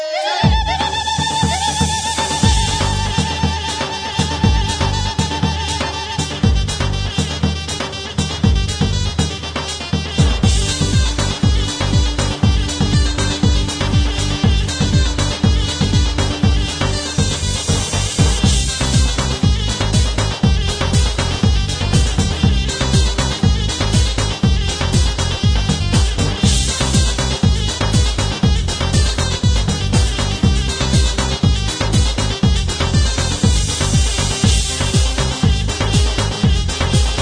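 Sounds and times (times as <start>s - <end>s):
Genesys Pro keyboard oriental music: 0.1s - 37.2s.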